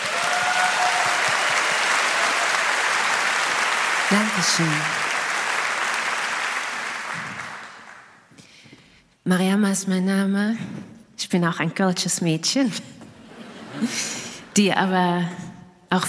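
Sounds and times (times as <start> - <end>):
audience applause: 0.0 - 8.3
speech: 4.1 - 5.1, 9.3 - 12.9, 13.8 - 16.0.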